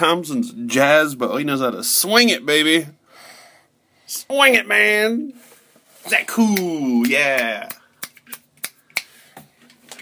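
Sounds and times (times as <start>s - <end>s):
speech: 0.0s - 3.0s, 4.1s - 7.8s
finger snaps instead of applause after a free jazz performance: 6.6s - 9.2s.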